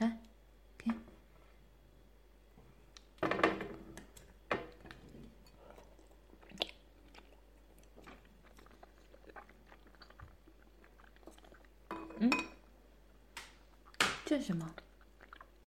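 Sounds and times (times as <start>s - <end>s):
person chewing and biting food during a meal: 4.0s - 11.9s, 13.5s - 14.0s, 14.7s - 15.6s
dishes and cutlery clinking: 11.9s - 12.6s
speech: 12.2s - 12.5s, 14.3s - 14.8s.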